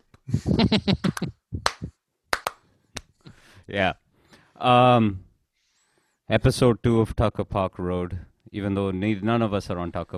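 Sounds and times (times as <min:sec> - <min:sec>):
speech: 0:00.3 - 0:01.3, 0:03.7 - 0:04.0, 0:04.6 - 0:05.3, 0:06.3 - 0:10.1
laughter: 0:00.3 - 0:01.9
hand claps: 0:01.0 - 0:03.1.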